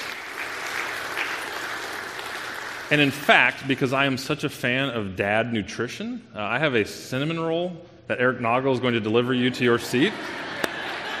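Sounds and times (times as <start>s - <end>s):
audience applause: 0.0s - 3.3s
speech: 2.9s - 10.4s
laughter: 9.4s - 11.1s.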